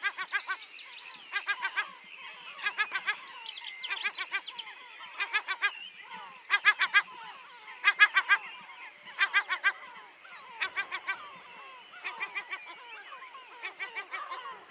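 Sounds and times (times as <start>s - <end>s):
many different birds calling: 0.0s - 14.7s.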